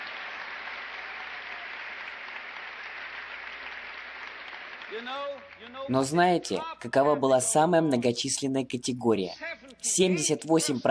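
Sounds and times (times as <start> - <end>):
audience applause: 0.0 - 6.2
speech: 4.9 - 10.8.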